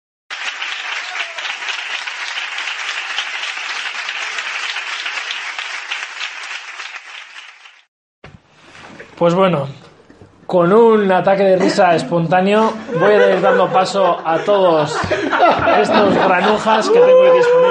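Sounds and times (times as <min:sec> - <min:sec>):
applause: 0:00.3 - 0:07.9
speech: 0:09.2 - 0:09.8, 0:10.5 - 0:17.6
laughter: 0:11.6 - 0:17.6.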